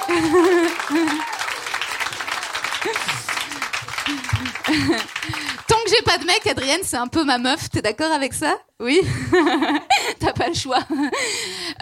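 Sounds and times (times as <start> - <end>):
laughter: 0.0 - 5.6, 9.1 - 10.1
audience applause: 0.0 - 6.8
speech: 0.1 - 1.4, 4.7 - 5.4, 6.0 - 11.8.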